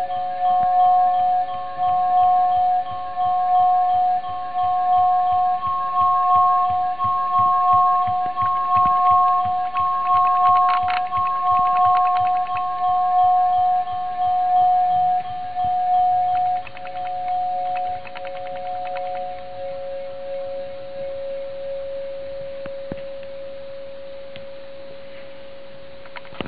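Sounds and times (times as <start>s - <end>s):
overtone singing: 0.1s - 20.8s.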